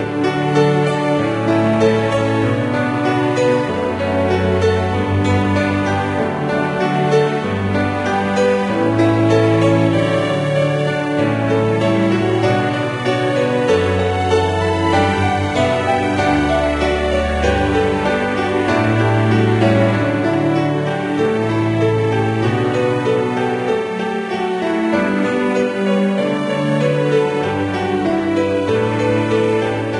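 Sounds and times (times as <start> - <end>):
classical piece: 0.0 - 29.9.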